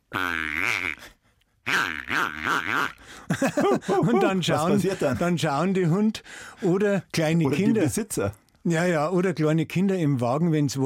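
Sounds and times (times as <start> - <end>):
squeaker from a squeaky toy pig squealing: 0.1 - 1.1, 1.7 - 3.0
speech: 2.2 - 10.8
laughter: 3.2 - 5.5, 7.5 - 8.1.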